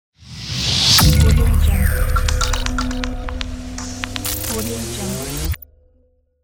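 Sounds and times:
logo impact hit: 0:00.6 - 0:04.6.

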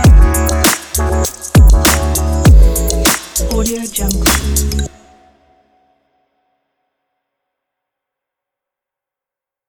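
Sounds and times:
future bass music: 0:00.0 - 0:05.1.

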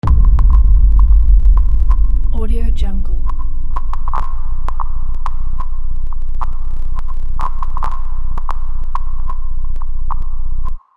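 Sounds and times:
sub bass noise impact: 0:00.0 - 0:07.6.

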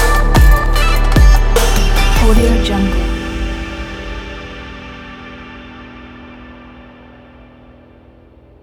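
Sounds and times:
future bass background music: 0:00.0 - 0:04.4.

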